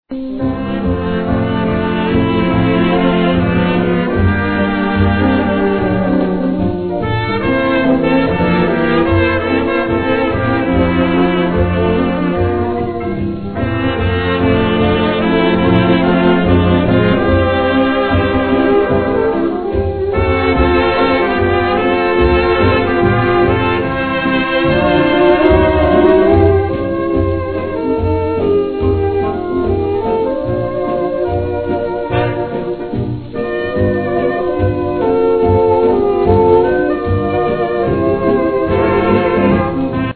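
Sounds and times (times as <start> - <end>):
slow dance orchestra: 0.1 - 40.1.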